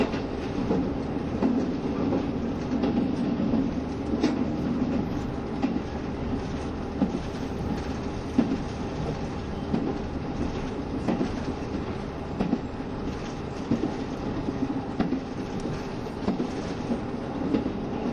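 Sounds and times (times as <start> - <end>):
KiHa 72 series diesel train Yufuin no Mori engine and rolling rumble: 0.0 - 18.1
faint rail clicks and brief knocks: 0.0 - 18.1.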